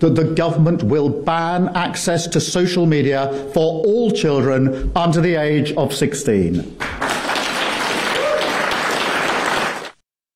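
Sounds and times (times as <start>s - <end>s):
speech: 0.0s - 7.0s
round of applause: 6.8s - 10.0s.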